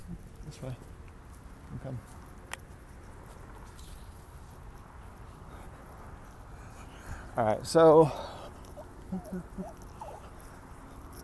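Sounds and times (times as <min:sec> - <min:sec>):
speech: 0:00.5 - 0:00.9, 0:01.7 - 0:02.2, 0:07.4 - 0:08.3, 0:09.1 - 0:09.8
dog whining: 0:08.4 - 0:11.2.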